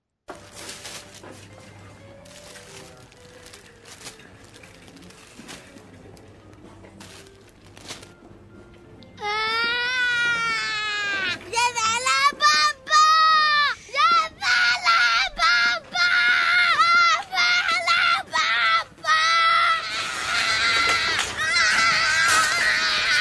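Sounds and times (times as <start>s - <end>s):
child wailing in a temper tantrum: 9.2s - 23.1s.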